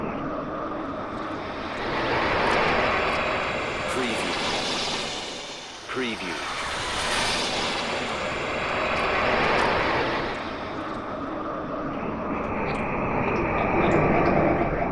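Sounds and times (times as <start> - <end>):
space turbulence swooshes: 0.0 - 14.9.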